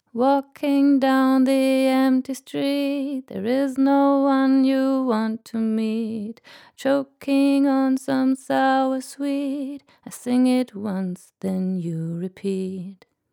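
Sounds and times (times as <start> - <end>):
vocals without EQ: 0.0 - 13.2.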